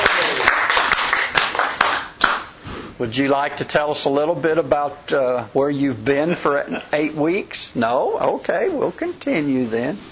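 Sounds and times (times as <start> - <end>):
audience applause at a live show: 0.0 - 2.4
speech: 3.0 - 10.1.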